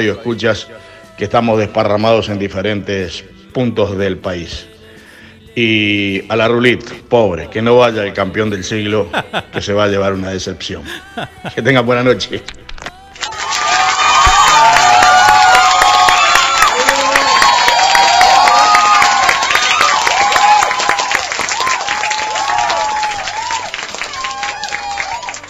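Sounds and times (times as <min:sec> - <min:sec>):
speech: 0:00.0 - 0:04.7, 0:05.6 - 0:12.6
laughter: 0:08.8 - 0:10.1, 0:10.8 - 0:11.8
cheers and whoops: 0:13.2 - 0:25.4
crowd applauding: 0:13.2 - 0:25.4.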